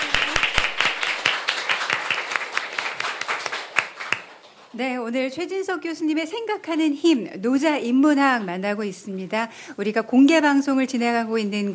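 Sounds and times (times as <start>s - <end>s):
audience applause: 0.0s - 4.7s
speech: 4.8s - 11.7s.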